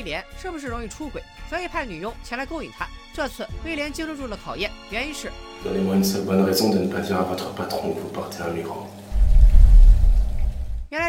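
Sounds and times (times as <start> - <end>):
speech: 0.0 - 9.0
water running from a tap: 5.7 - 10.9.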